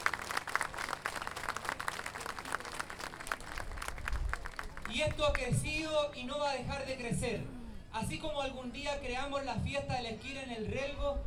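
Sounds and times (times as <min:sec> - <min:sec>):
audience applause: 0:00.0 - 0:05.4
speech: 0:05.0 - 0:11.2.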